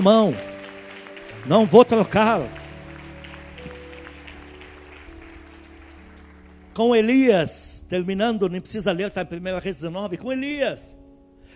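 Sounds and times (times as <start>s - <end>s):
speech: 0.0s - 0.5s, 1.4s - 2.6s, 6.8s - 11.0s
audience applauding: 0.0s - 7.4s
low sustained keyboard chords: 0.0s - 11.5s.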